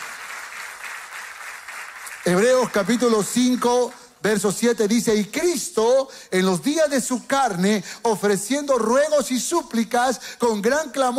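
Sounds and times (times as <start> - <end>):
audience applause: 0.0 - 4.0
speech: 2.2 - 11.1.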